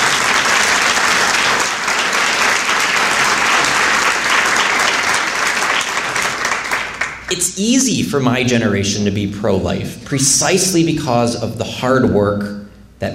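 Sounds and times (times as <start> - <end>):
audience applause: 0.0 - 7.3
speech: 7.4 - 13.1.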